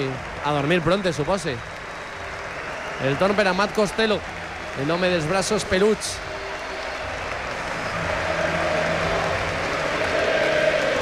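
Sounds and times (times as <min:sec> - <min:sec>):
speech: 0:00.0 - 0:01.8, 0:03.0 - 0:06.3
crowd ovation at player introduction: 0:00.0 - 0:11.0.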